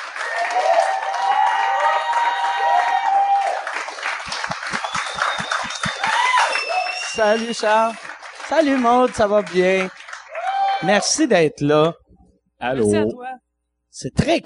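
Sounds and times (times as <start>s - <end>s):
audience applause: 0.0s - 11.2s
speech: 7.2s - 10.0s, 10.8s - 12.0s, 12.6s - 13.2s, 14.0s - 14.4s.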